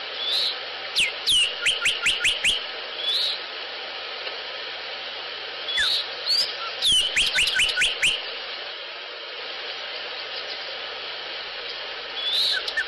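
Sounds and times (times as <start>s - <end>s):
Sinaloa Wren calls: 0.2s - 3.4s, 5.7s - 8.2s, 11.7s - 12.8s.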